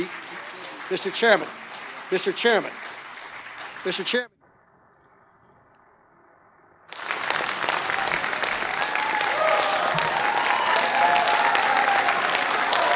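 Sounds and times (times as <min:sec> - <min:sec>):
rousing applause: 0:00.0 - 0:04.3, 0:06.9 - 0:12.9
speech: 0:00.9 - 0:02.8, 0:03.8 - 0:04.3.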